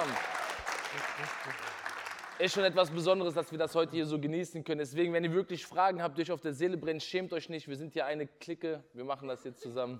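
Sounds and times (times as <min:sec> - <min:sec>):
crowd clapping: 0:00.0 - 0:03.5
speech: 0:02.4 - 0:09.9.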